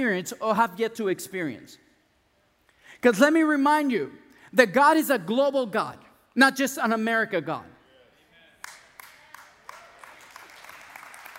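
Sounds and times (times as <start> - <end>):
speech: 0.0 - 1.8, 3.0 - 7.7
audience applause: 8.6 - 11.3.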